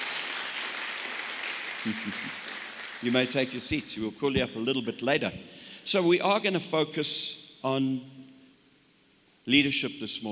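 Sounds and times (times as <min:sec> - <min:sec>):
church congregation applauding: 0:00.0 - 0:03.8
speech: 0:01.8 - 0:08.2, 0:09.5 - 0:10.3.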